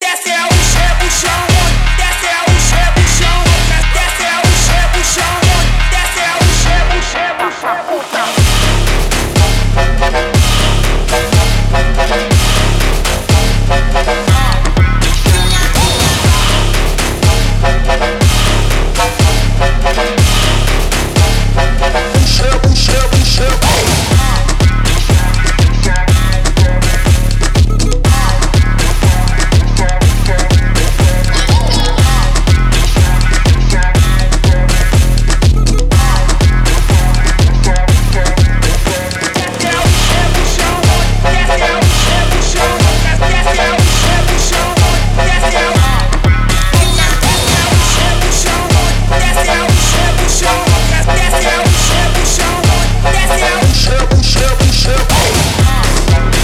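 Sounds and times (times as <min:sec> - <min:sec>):
Brazilian phonk music: 0:00.0 - 0:56.4.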